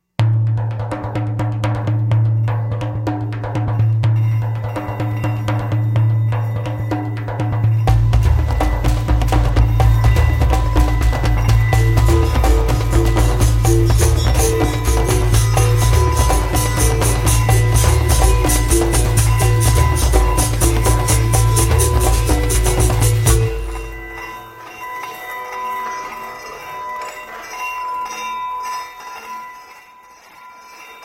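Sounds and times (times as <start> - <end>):
berimbao: 0.2 - 28.4.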